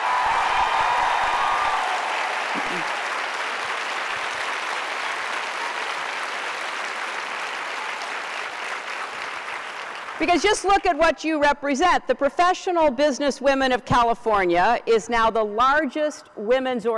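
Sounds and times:
faint voices and cheers: 0.0s - 3.4s
audience applause: 0.0s - 10.7s
speech: 10.2s - 16.9s.

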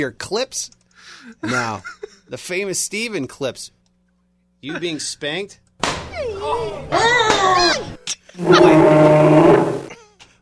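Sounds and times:
speech: 0.0s - 3.8s, 4.6s - 9.7s
human voice imitating animal squeal: 8.4s - 9.9s.

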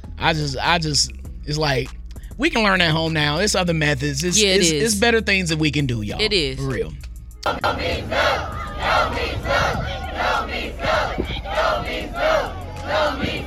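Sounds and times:
speech: 0.2s - 13.4s
students chanting at a school protest against sexual harassment: 7.5s - 13.4s.

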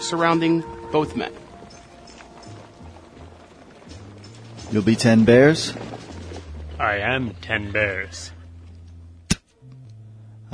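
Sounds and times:
faint horse hoofbeats of two riders approaching: 0.0s - 8.9s
speech: 0.1s - 1.4s, 4.7s - 6.0s, 6.8s - 8.4s
low noisy rumble: 0.6s - 10.5s.

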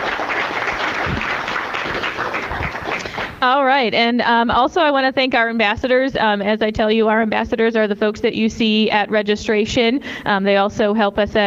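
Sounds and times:
audience applause: 0.0s - 3.4s
speech: 3.4s - 11.4s.

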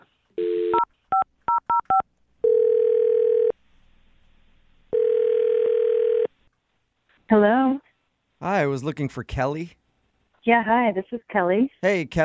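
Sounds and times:
telephone ringing tones: 0.4s - 3.5s, 4.9s - 6.3s
touch-tone keypad beeps: 0.8s - 2.0s
speech: 8.6s - 9.8s, 10.4s - 12.2s.

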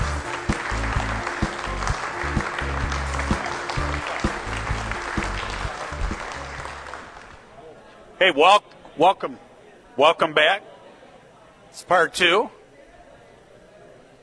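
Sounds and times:
low rhythmic bass line: 0.0s - 6.9s
live audience clapping at a downtown Jackson event: 0.0s - 7.5s
speech: 8.2s - 10.7s, 11.7s - 12.6s.

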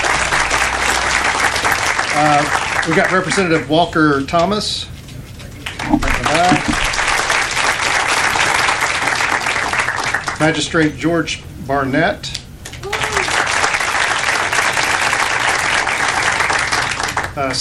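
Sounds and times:
audience applause: 0.0s - 3.6s, 5.7s - 10.4s, 12.8s - 17.3s
speech: 2.2s - 4.9s, 10.4s - 12.4s, 17.4s - 17.6s.

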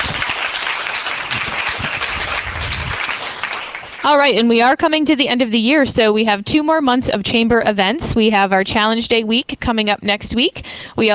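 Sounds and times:
audience round of applause: 0.0s - 4.3s
speech: 4.0s - 11.1s.

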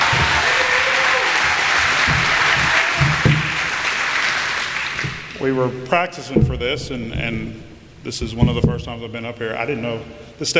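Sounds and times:
audience applause: 0.0s - 5.4s
speech: 5.4s - 10.5s.

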